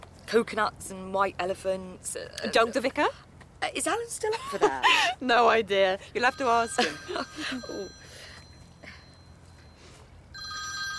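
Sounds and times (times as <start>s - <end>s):
low hum: 0.0s - 10.9s
speech: 0.3s - 8.0s
telephone ringing: 6.2s - 9.2s, 10.3s - 10.9s.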